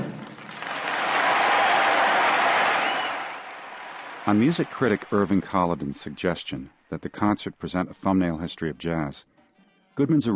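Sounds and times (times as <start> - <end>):
explosion of applause from concert audience: 0.1 - 5.9
speech: 4.3 - 9.3, 9.9 - 10.3.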